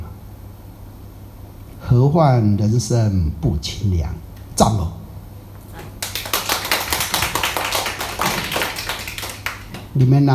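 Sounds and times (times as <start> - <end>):
speech: 1.9 - 5.0, 10.0 - 10.3
rhythmic hand clapping: 5.8 - 10.3.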